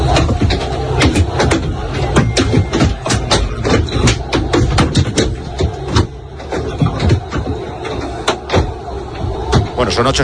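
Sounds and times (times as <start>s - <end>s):
objects hitting a bus, heard from inside: 0.0s - 9.9s.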